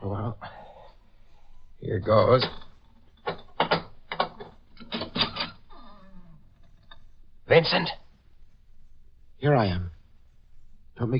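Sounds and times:
speech: 0:01.8 - 0:02.6, 0:07.6 - 0:08.0, 0:09.4 - 0:10.0, 0:11.0 - 0:11.1
door creaking: 0:02.3 - 0:07.0
door bolt drawn back with metallic clacks and scrapes: 0:03.3 - 0:05.6.

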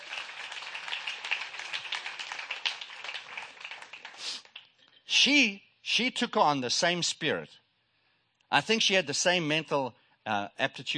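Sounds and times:
audience hand clapping: 0:00.0 - 0:04.8
speech: 0:05.2 - 0:07.6, 0:08.5 - 0:10.9.

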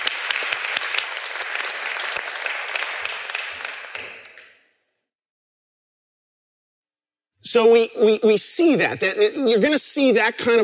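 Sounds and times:
audience applause: 0:00.0 - 0:04.6
speech: 0:07.5 - 0:10.6.

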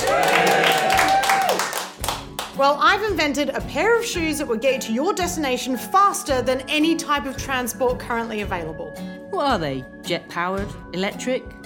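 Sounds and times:
audience cheering and whooping: 0:00.0 - 0:01.9
scattered clapping: 0:00.0 - 0:02.6
speech: 0:02.6 - 0:11.6.

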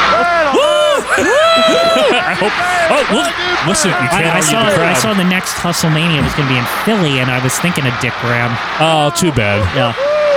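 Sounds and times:
wrestling crowd cheering: 0:00.0 - 0:10.3
laughter: 0:00.4 - 0:08.3
speech: 0:02.4 - 0:10.3.

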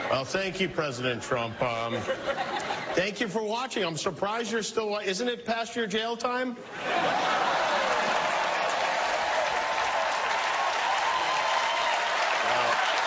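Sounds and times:
speech: 0:00.1 - 0:07.6
laughter: 0:01.5 - 0:03.1, 0:06.6 - 0:09.1
audience applause: 0:06.9 - 0:13.0.

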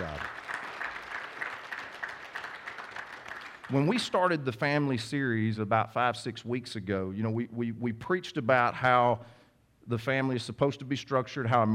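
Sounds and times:
round of applause: 0:00.0 - 0:04.3
speech: 0:03.7 - 0:11.7.

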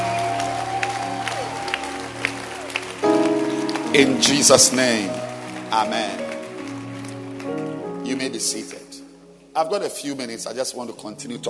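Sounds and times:
audience applause: 0:00.0 - 0:08.0
speech: 0:03.9 - 0:06.2, 0:08.1 - 0:08.9, 0:09.6 - 0:11.4.

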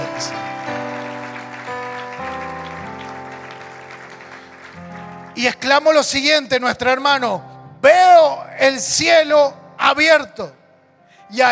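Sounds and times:
audience applause: 0:00.0 - 0:05.4
sustained keyboard chords: 0:00.0 - 0:11.5
speech: 0:05.4 - 0:10.6, 0:11.3 - 0:11.5.

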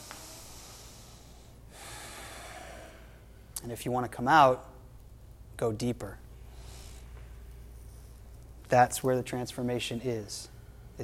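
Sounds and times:
faint ujjayi yoga breathing: 0:00.0 - 0:03.5, 0:06.5 - 0:07.2
speech: 0:03.6 - 0:04.7, 0:05.6 - 0:06.2, 0:08.7 - 0:10.5.

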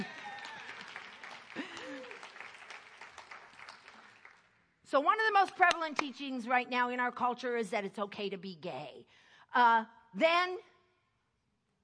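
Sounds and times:
audience applause: 0:00.0 - 0:04.5
speech: 0:04.9 - 0:10.7.

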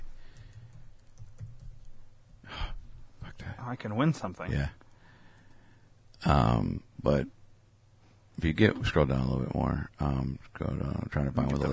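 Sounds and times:
typing a search on a computer keyboard: 0:00.2 - 0:02.0
speech: 0:03.6 - 0:04.8, 0:06.2 - 0:07.4, 0:08.4 - 0:11.7.

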